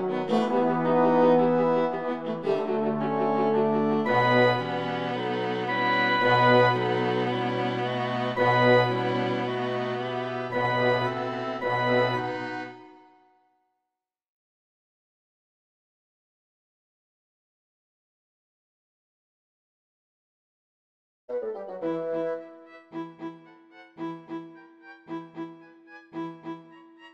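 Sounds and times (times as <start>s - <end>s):
orchestra playing: 0.0s - 12.8s, 21.3s - 22.8s.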